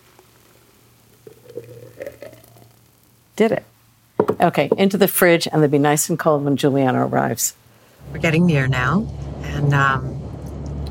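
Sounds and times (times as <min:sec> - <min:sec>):
thick blended drink pouring into a glass: 0:01.1 - 0:02.8
speech: 0:03.4 - 0:03.7, 0:04.4 - 0:10.2
steady low hum: 0:08.0 - 0:10.8.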